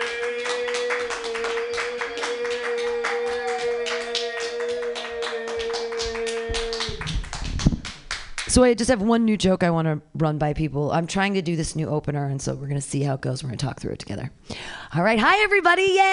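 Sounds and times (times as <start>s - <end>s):
audience clapping: 0.0s - 8.6s
speech: 8.5s - 16.1s.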